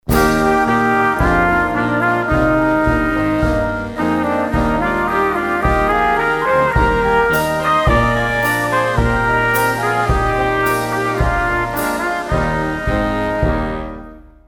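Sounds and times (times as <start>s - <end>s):
national anthem music: 0.0s - 14.2s.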